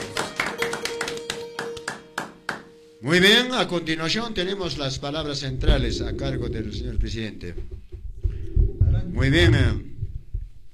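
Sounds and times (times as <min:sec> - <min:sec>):
audience applause at a community gathering: 0:00.0 - 0:02.6
speech: 0:03.0 - 0:07.8, 0:09.2 - 0:09.9.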